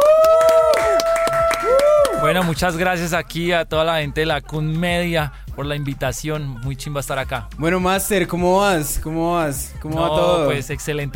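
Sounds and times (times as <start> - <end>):
audience applause: 0.0 - 2.6
speech: 2.3 - 11.1.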